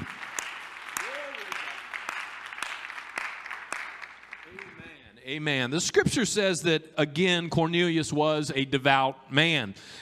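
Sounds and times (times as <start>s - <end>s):
audience clapping: 0.0s - 5.0s
speech: 5.3s - 10.0s.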